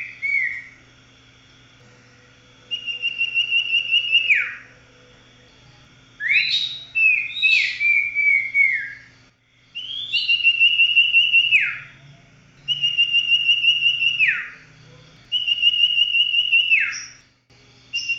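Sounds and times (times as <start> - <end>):
Oriental magpie-robin whistling song: 0.0 - 0.8, 2.6 - 4.8, 6.2 - 9.2, 9.8 - 17.2, 17.9 - 18.1.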